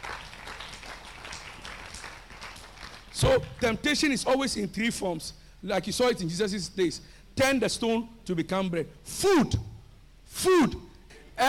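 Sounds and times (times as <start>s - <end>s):
audience clapping hands: 0.0s - 3.8s
speech: 3.2s - 9.6s, 10.4s - 10.8s.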